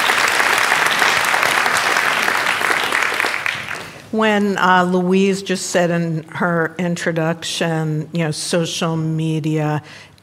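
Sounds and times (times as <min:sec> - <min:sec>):
audience applause welcoming a guest journalist at a panel talk: 0:00.0 - 0:04.0
speech: 0:04.1 - 0:10.2.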